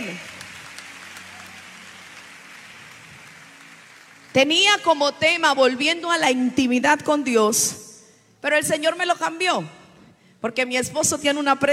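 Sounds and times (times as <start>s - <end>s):
audience applause: 0.0s - 4.3s
speech: 4.4s - 7.8s, 8.4s - 9.8s, 10.4s - 11.7s.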